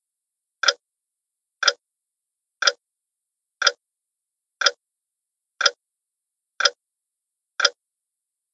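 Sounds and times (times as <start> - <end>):
house clock: 0.6 - 0.8, 1.6 - 1.8, 2.6 - 2.8, 3.6 - 3.8, 4.6 - 4.8, 5.6 - 5.8, 6.6 - 6.8, 7.6 - 7.8.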